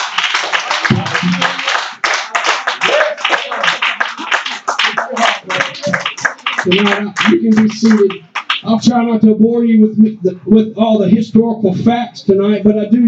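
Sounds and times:
audience clapping: 0.0s - 8.8s
speech: 6.6s - 13.0s.

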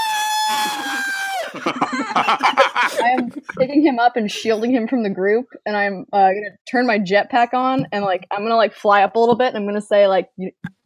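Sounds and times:
person vocally imitating a scream of pain: 0.0s - 1.6s
speech: 0.6s - 10.8s
laughter: 0.7s - 3.7s.

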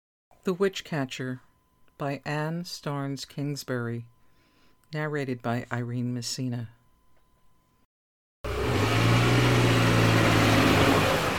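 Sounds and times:
speech: 0.4s - 4.1s, 4.9s - 6.8s
jeep driving under towering oak trees beside a broad field: 8.5s - 11.3s.

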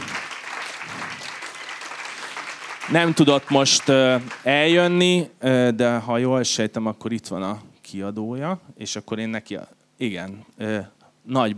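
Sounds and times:
audience applause at a literary award ceremony: 0.0s - 4.8s
speech: 2.9s - 11.5s.

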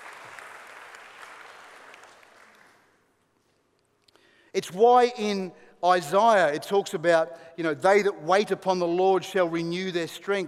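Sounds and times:
audience applause: 0.0s - 2.9s
speech: 4.6s - 10.4s.

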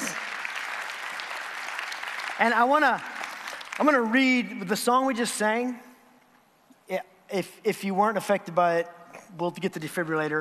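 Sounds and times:
crowd clapping: 0.0s - 5.0s
speech: 2.4s - 3.1s, 3.8s - 5.9s, 6.9s - 10.4s.

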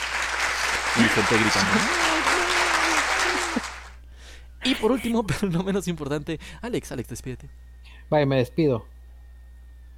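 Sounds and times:
applause sound effect: 0.0s - 4.0s
laughter: 0.6s - 3.9s, 4.6s - 5.6s
speech: 1.0s - 2.3s, 4.6s - 8.9s.

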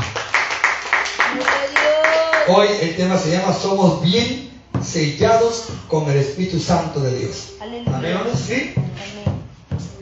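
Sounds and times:
hands clapping in rhythm: 0.0s - 2.5s
speech: 2.5s - 9.2s.

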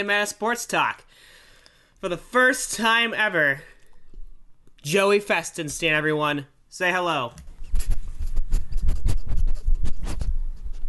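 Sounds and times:
speech: 0.0s - 1.3s, 2.0s - 3.7s, 4.8s - 7.5s
dog sniffing and snuffling at a microphone: 7.7s - 10.8s.

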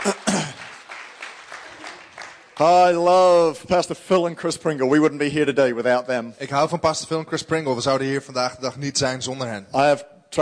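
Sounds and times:
audience applause: 0.0s - 3.4s
speech: 2.6s - 10.4s.

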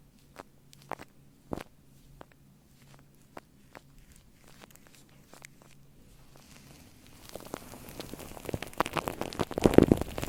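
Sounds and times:
shaving cream crackling on a microphone: 2.2s - 10.2s.

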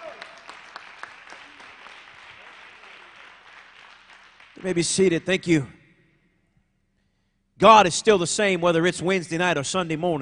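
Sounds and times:
audience clapping hands in praise: 0.0s - 5.4s
speech: 4.6s - 5.8s, 7.6s - 10.2s.

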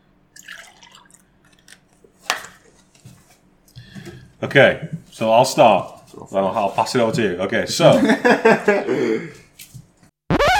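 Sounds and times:
milk being poured: 0.4s - 1.8s
speech: 4.4s - 9.4s
laughter: 7.9s - 9.4s.

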